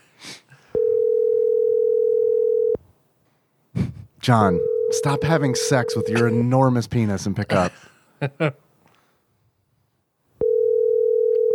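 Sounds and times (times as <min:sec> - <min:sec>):
ringback tone on an outgoing phone call: 0:00.8 - 0:02.8, 0:04.6 - 0:06.3, 0:10.4 - 0:11.5
speech: 0:04.2 - 0:08.6.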